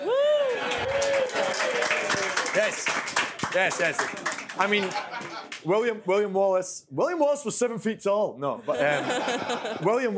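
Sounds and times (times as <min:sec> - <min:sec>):
applause: 0:00.3 - 0:05.6
speech: 0:02.7 - 0:10.1
laughter: 0:04.6 - 0:05.6, 0:08.6 - 0:10.1.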